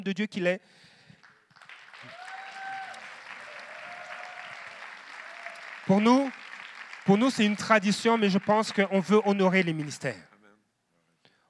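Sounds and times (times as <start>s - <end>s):
speech: 0.0s - 0.9s, 5.9s - 6.5s, 7.1s - 10.3s
audience applause and cheers: 1.3s - 10.2s.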